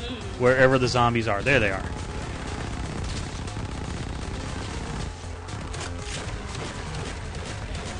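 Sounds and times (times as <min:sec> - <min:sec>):
speech: 0:00.4 - 0:02.1
Smash TV arcade shooter rapid gunfire: 0:00.6 - 0:07.9.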